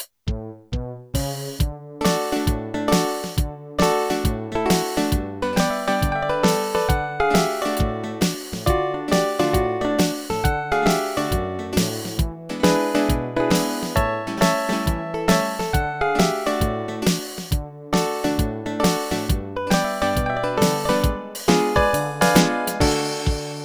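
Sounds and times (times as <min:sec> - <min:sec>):
country music: 0:02.0 - 0:23.6.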